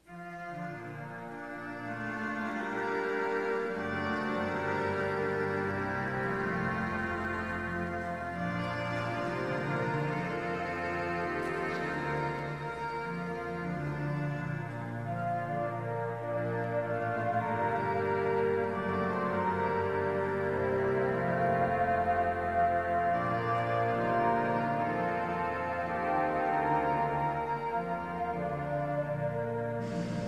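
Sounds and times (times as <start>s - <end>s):
national anthem music: 0.0s - 30.2s.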